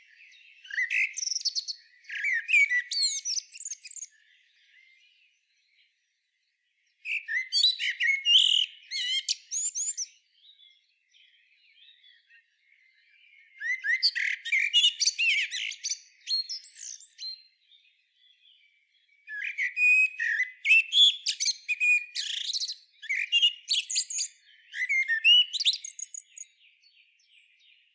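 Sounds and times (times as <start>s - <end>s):
Common blackbird chirps and downslurred whistles: 0.6s - 4.1s, 7.1s - 10.1s, 13.6s - 17.4s, 19.3s - 26.5s.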